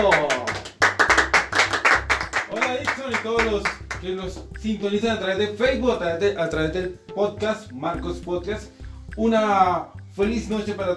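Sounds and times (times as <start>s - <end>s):
speech: 0.0s - 0.4s, 3.2s - 10.9s
audience applause: 0.0s - 2.9s.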